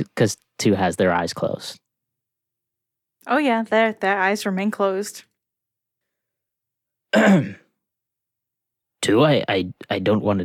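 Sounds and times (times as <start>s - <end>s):
speech: 0.1s - 1.8s, 3.2s - 5.3s, 7.1s - 7.6s, 9.0s - 10.4s
player clearing throat for a character in a tabletop role-play: 7.1s - 7.7s.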